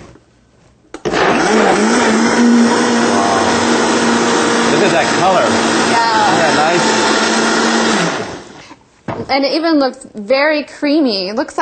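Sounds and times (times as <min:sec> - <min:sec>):
blender whirring through hot broccoli soup: 0:01.0 - 0:08.7
speech: 0:09.3 - 0:11.5.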